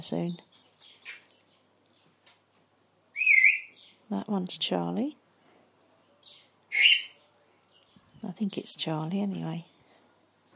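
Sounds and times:
speech: 0:00.0 - 0:00.5, 0:04.1 - 0:05.2, 0:08.2 - 0:09.7
parrots chattering excitedly: 0:03.1 - 0:03.9, 0:06.2 - 0:07.2.

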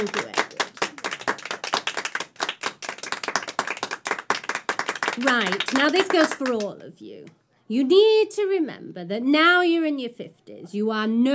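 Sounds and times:
speech: 0:00.0 - 0:00.2, 0:05.2 - 0:11.3
audience round of applause: 0:00.0 - 0:06.6.

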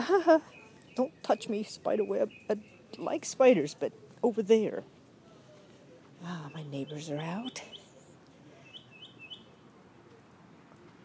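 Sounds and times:
speech: 0:00.0 - 0:04.9, 0:06.2 - 0:07.8
birds chirping outdoors: 0:00.4 - 0:03.4, 0:06.2 - 0:09.7.

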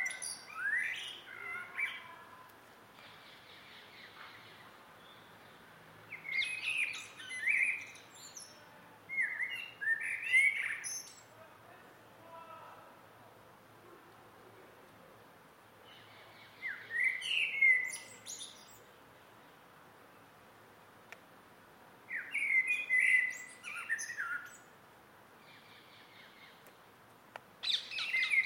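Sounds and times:
close blackbird singing in an evening garden: 0:00.0 - 0:02.3, 0:03.1 - 0:11.4, 0:15.8 - 0:18.9, 0:22.1 - 0:24.7, 0:27.6 - 0:28.4
evening garden birds singing: 0:00.0 - 0:02.3, 0:03.0 - 0:11.4, 0:15.8 - 0:20.3, 0:22.1 - 0:24.7, 0:25.4 - 0:26.9, 0:27.6 - 0:28.4.

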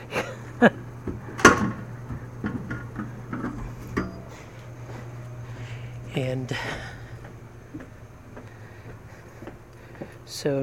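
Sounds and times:
low electrical hum: 0:00.0 - 0:10.6
speech: 0:00.6 - 0:00.8, 0:06.2 - 0:07.0, 0:10.4 - 0:10.6
soda vending machine dropping a can: 0:01.1 - 0:04.3.

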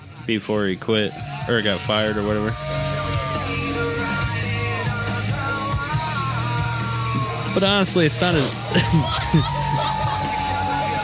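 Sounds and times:
speech: 0:00.3 - 0:02.8, 0:07.6 - 0:09.6
wrestling crowd shouting: 0:01.1 - 0:11.0
laughter: 0:08.2 - 0:11.0.

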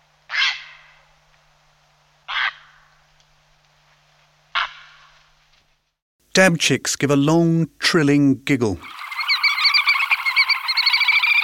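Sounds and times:
heron giving sharp bark calls as it departs: 0:00.3 - 0:01.0, 0:02.3 - 0:02.9, 0:04.5 - 0:05.1, 0:08.8 - 0:11.4
speech: 0:06.4 - 0:09.0.

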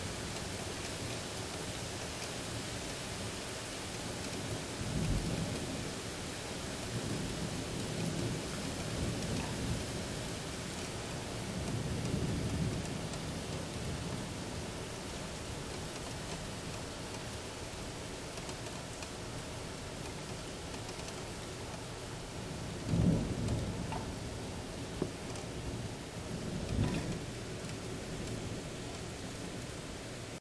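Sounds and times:
thunderstorm in northern Manhattan: 0:00.0 - 0:30.4.

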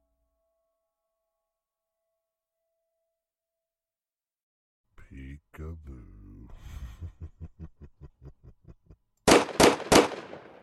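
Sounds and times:
speech: 0:05.1 - 0:07.1
laughter: 0:06.6 - 0:09.0
loud sharp gunshot blasts: 0:09.3 - 0:10.6.

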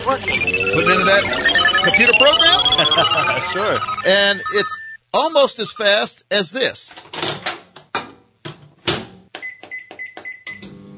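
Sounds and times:
microwave oven high-pitched electronic beeps: 0:00.0 - 0:05.0
speech: 0:00.1 - 0:07.1
microwave oven running: 0:10.5 - 0:10.9.

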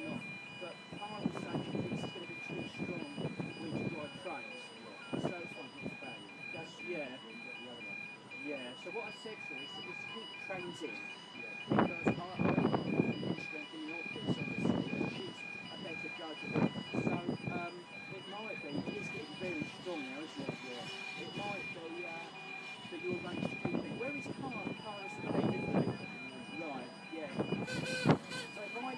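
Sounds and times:
people talking: 0:00.0 - 0:22.3, 0:22.9 - 0:28.9
railway crossing warning siren, shrill electronic pulsing tone: 0:00.0 - 0:28.9.

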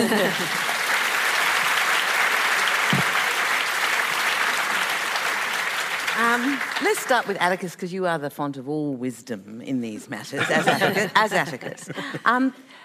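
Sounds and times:
laughter: 0:00.0 - 0:00.7, 0:10.4 - 0:12.5
audience applauding: 0:00.0 - 0:07.6
speech: 0:00.1 - 0:00.7, 0:06.2 - 0:12.8.

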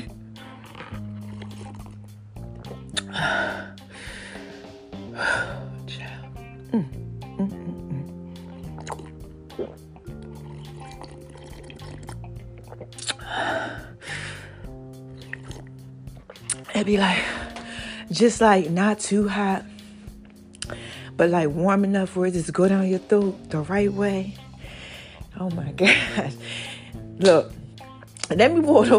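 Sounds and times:
slurping sips of warm tea: 0:00.0 - 0:04.5, 0:07.2 - 0:18.1
music bed: 0:00.0 - 0:28.9
speech: 0:16.8 - 0:17.4, 0:18.1 - 0:19.7, 0:21.2 - 0:24.4, 0:25.4 - 0:26.6, 0:27.2 - 0:27.5, 0:28.3 - 0:28.9.

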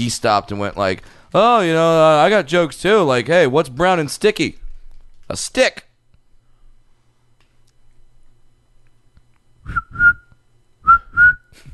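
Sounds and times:
speech: 0:00.0 - 0:04.6, 0:05.3 - 0:05.9
person whistling a bird call imitation: 0:09.7 - 0:11.6.

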